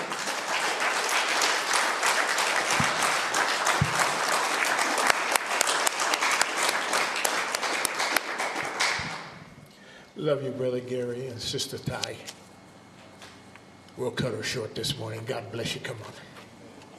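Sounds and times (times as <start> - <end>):
audience applauding pastors: 0.0 - 9.4
speech: 10.2 - 12.4, 14.0 - 16.3.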